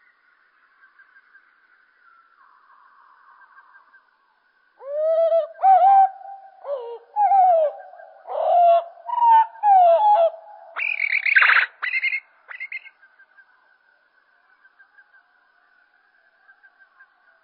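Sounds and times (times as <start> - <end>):
common blackbird song played slow: 4.8 - 12.9.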